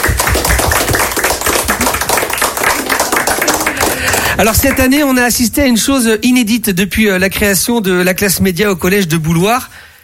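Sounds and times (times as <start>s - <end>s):
group of students applauding: 0.0s - 5.4s
speech: 4.4s - 9.8s.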